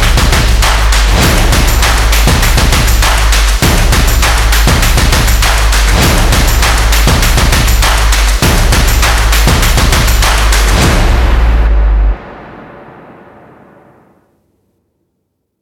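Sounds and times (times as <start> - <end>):
energetic stomp percussion: 0.0 - 12.2.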